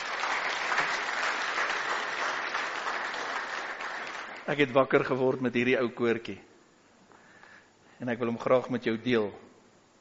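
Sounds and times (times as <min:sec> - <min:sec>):
audience clapping: 0:00.0 - 0:04.8
speech: 0:04.5 - 0:06.5, 0:08.0 - 0:09.5.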